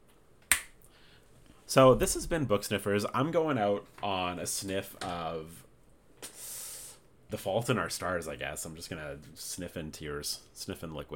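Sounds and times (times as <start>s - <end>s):
high five hand slap: 0.5s - 0.7s
speech: 1.7s - 5.7s, 7.3s - 11.1s.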